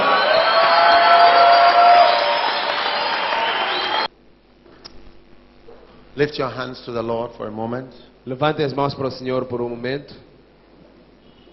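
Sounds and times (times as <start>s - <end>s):
audience shouting: 0.0s - 4.1s
speech: 6.2s - 10.3s.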